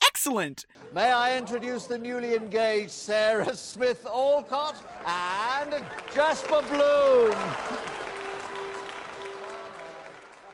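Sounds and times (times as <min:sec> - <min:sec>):
speech: 0:00.2 - 0:08.0
people applauding: 0:05.0 - 0:10.5.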